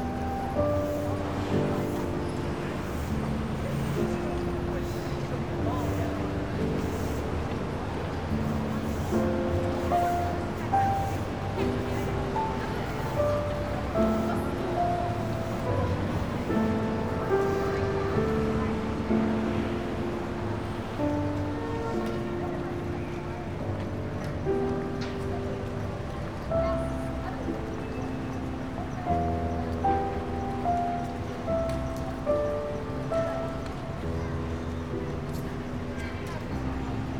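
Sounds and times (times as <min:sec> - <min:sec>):
distant city sounds: 0:00.0 - 0:37.1.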